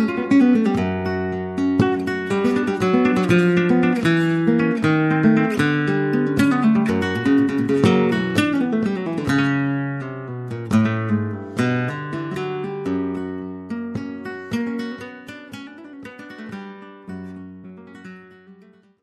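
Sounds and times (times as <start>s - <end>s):
flamenco variations por soleá: 0.0s - 18.9s.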